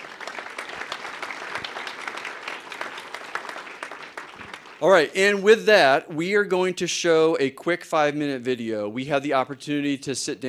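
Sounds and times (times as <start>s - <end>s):
audience applause: 0.0s - 5.4s
speech: 4.8s - 10.4s.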